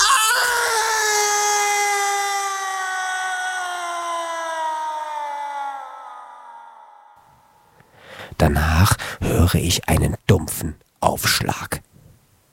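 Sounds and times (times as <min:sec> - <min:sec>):
unbearable long piercing human scream: 0:00.0 - 0:07.2
speech: 0:08.5 - 0:11.9.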